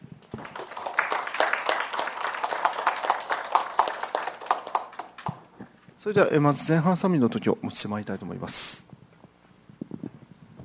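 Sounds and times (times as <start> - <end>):
audience clapping in thanks: 0.2 - 5.5
speech: 6.0 - 8.8.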